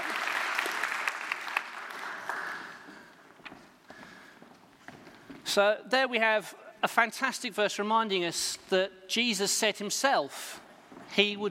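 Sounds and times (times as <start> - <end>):
audience clapping: 0.0 - 3.2
speech: 5.5 - 11.4.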